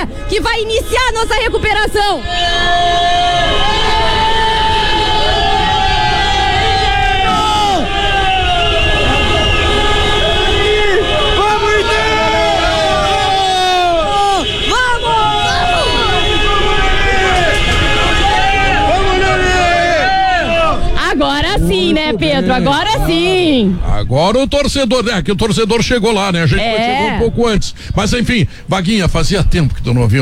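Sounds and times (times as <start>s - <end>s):
speech: 0.0s - 3.6s, 22.0s - 30.2s
fans honking car horns celebrating a goal: 2.4s - 23.8s.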